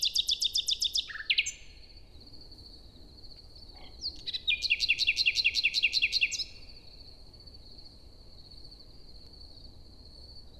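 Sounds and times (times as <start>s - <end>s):
common nightingale singing morning song in a forest in Luxembourg: 0.0s - 2.0s, 3.4s - 6.9s.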